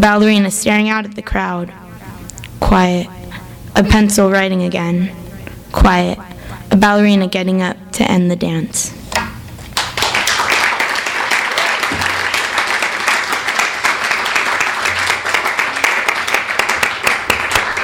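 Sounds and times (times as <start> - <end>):
speech: 0.0 - 1.8, 2.6 - 3.2, 3.8 - 9.0
audience applause after poetry reading: 9.8 - 17.8.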